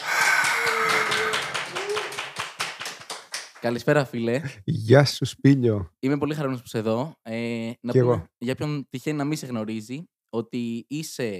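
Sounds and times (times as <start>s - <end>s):
applause: 0.0s - 3.9s
speech: 3.6s - 11.3s.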